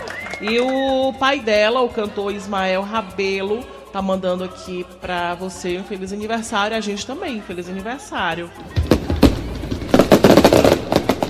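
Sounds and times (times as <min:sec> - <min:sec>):
speech: 0:00.4 - 0:08.9
fireworks: 0:08.6 - 0:11.2.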